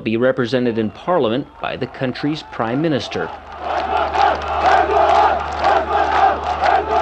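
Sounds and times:
speech: 0.0s - 4.5s
crowd cheering and chanting: 0.2s - 7.0s.

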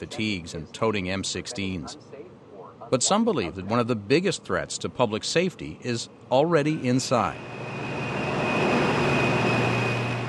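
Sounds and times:
speech: 0.0s - 2.2s, 2.9s - 7.7s
giant steam turbines in a nuclear plant roaring: 6.9s - 10.2s.

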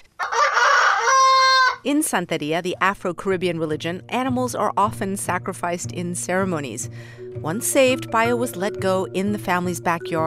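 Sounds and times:
rooster crowing: 0.2s - 1.8s
speech: 1.8s - 10.2s.

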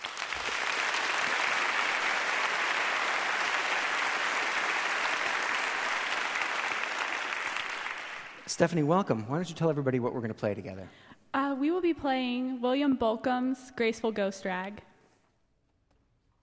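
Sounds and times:
audience applauding to welcome a violinist: 0.0s - 8.9s
speech: 8.5s - 11.0s, 11.6s - 14.9s.

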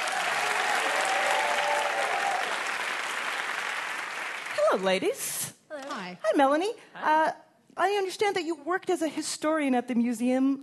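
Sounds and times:
audience applause for contestants: 0.0s - 4.6s
speech: 4.7s - 10.6s.

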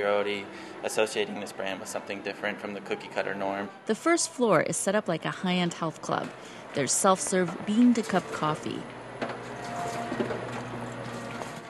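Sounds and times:
speech: 0.0s - 9.4s
automatic orange juicer humming while squeezing oranges: 6.6s - 11.6s.

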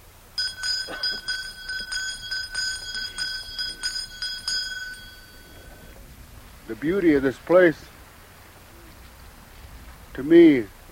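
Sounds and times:
hand bell ringing: 0.4s - 6.0s
speech: 6.7s - 7.9s, 10.2s - 10.8s.

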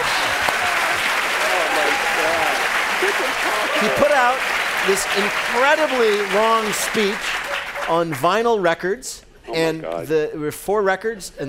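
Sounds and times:
crowd applause: 0.0s - 8.2s
speech: 3.2s - 11.4s.

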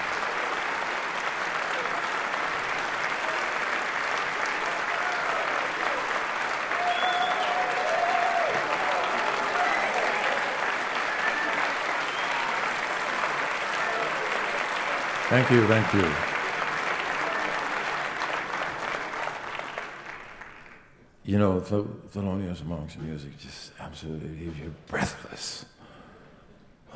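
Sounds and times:
audience applause: 0.0s - 21.0s
faint whistle or cheer: 6.7s - 12.8s
speech: 15.3s - 16.3s, 21.3s - 25.7s.

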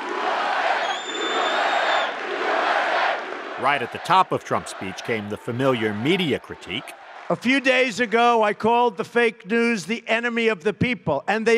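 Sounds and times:
CPAC audience chanting during a speech: 0.0s - 7.6s
CPAC audience roaring during a speech: 0.0s - 8.5s
speech: 3.6s - 11.5s.

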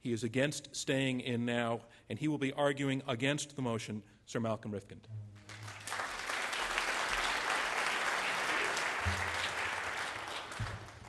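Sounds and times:
speech: 0.0s - 5.5s
audience applause welcoming debate speaker: 5.4s - 11.0s.

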